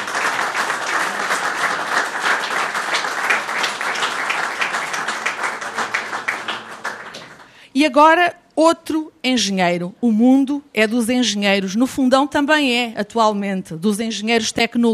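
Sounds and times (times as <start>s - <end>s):
audience applause: 0.0s - 7.6s
speech: 7.8s - 14.9s.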